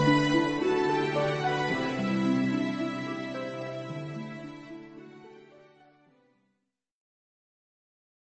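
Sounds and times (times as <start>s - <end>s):
background music: 0.0s - 6.3s.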